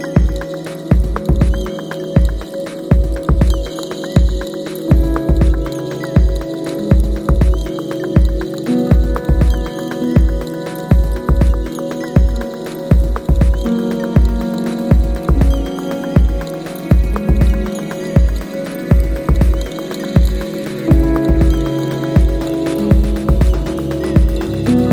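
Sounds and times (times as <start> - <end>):
colours of noise: 0.0 - 24.9.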